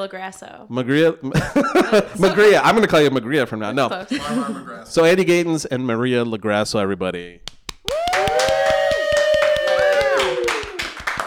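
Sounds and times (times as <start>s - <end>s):
speech: 0.0s - 7.6s
laughter: 1.3s - 2.7s, 4.1s - 4.9s
one person clapping in a quick steady rhythm: 7.4s - 11.2s
voice holding a long wavering cheer-like tone: 7.8s - 11.1s.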